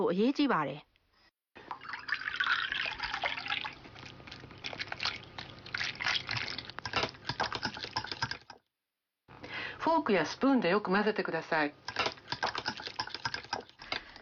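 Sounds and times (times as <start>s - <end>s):
speech: 0.0s - 0.9s, 9.9s - 11.9s
water pouring into a bowl of flour for dough: 1.6s - 8.6s, 11.9s - 13.8s.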